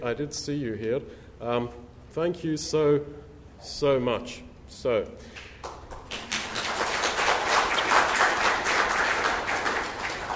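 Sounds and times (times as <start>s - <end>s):
speech: 0.0s - 5.5s
audience applause at a community gathering in Hurstville: 5.6s - 10.3s.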